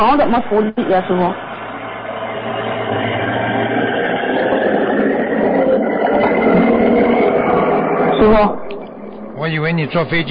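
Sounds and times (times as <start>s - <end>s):
speech: 0.0s - 1.4s, 8.2s - 8.8s, 9.5s - 10.2s
car passing by downstairs: 1.1s - 8.9s.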